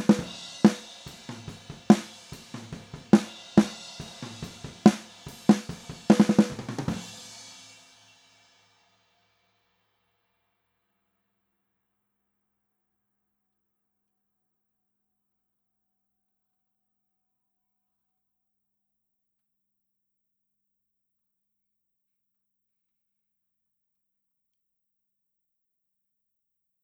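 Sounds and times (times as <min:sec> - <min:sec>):
snare drums recorded with an SM57 microphone: 0:00.0 - 0:07.8.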